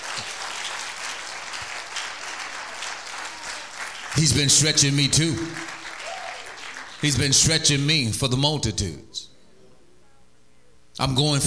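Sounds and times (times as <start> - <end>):
audience clapping: 0.0 - 7.9
speech: 4.2 - 5.7, 7.0 - 9.3, 11.0 - 11.4.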